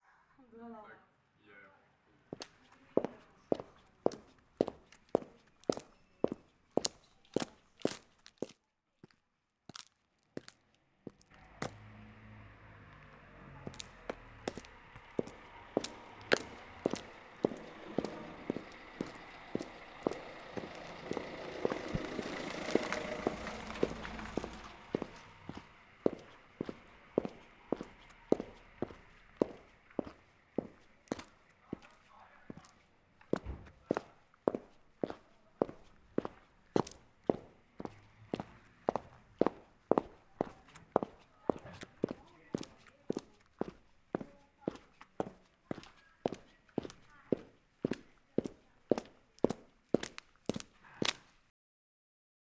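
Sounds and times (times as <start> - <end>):
footsteps of heels on pavement: 2.3 - 51.4.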